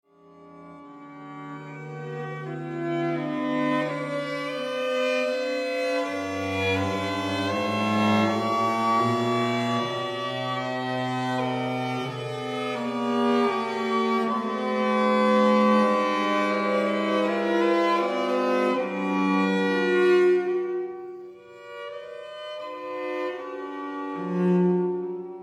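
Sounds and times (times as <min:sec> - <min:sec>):
string quartet: 0:00.2 - 0:25.4.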